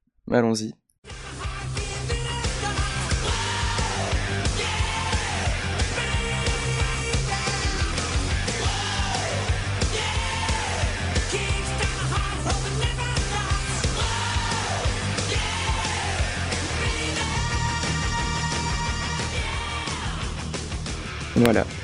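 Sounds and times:
speech: 0.3s - 1.2s, 21.4s - 21.7s
1980s glam metal song: 1.1s - 21.8s
distorted guitars: 1.1s - 21.8s
driving bass line: 1.1s - 21.8s
soaring vocal line: 1.2s - 20.5s.

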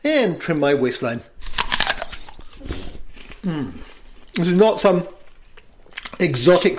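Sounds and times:
speech: 0.0s - 1.4s, 3.4s - 5.2s, 6.2s - 6.7s
teeth biting into an apple: 1.4s - 4.4s
crunching of chewing an apple: 1.4s - 4.5s, 5.2s - 6.4s.

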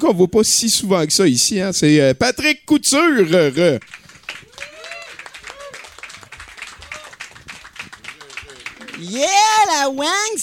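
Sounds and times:
speech: 0.0s - 4.4s, 9.0s - 10.4s
audience applause: 3.2s - 9.3s.

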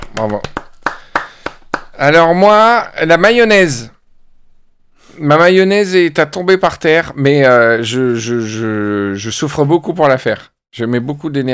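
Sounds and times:
hand claps in applause jingle: 0.0s - 2.0s
speech: 0.2s - 0.6s, 2.0s - 4.0s, 5.2s - 11.5s.

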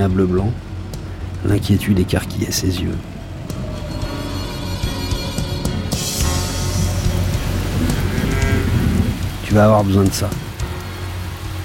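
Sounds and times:
speech: 0.0s - 0.7s, 1.4s - 3.2s, 9.5s - 10.5s
heavy rain in a storm: 0.0s - 11.6s
deep thunder rumbling: 2.1s - 10.6s.

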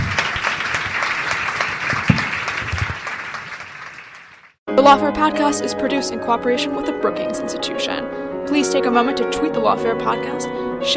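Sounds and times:
audience applause: 0.0s - 4.6s
speech: 4.8s - 10.9s.

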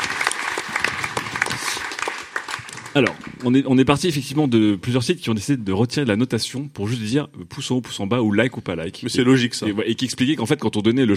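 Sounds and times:
audience applause: 0.0s - 3.6s
speech: 2.9s - 11.1s.

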